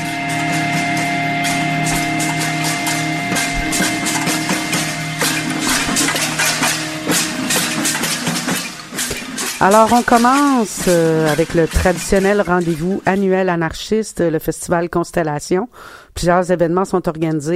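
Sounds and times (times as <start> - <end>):
banging on cooking pots: 0.0 - 13.6
speech: 9.6 - 17.5.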